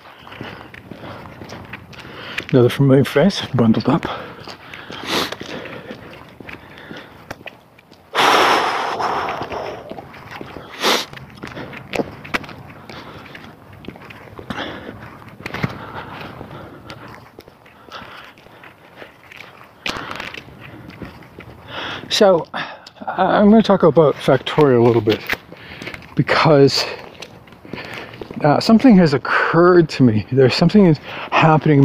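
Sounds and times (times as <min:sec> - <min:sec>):
hiker's footsteps scuffing on a cold morning trail: 0:00.0 - 0:22.5, 0:23.6 - 0:28.9
speech: 0:02.5 - 0:04.6, 0:22.2 - 0:22.6, 0:23.2 - 0:25.4, 0:26.2 - 0:27.0, 0:28.4 - 0:31.8.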